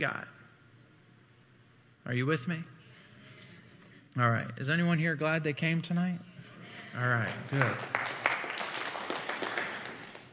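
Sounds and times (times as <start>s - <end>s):
speech: 0.0s - 0.4s, 2.0s - 2.8s, 4.2s - 8.0s
audience clapping: 7.0s - 10.3s.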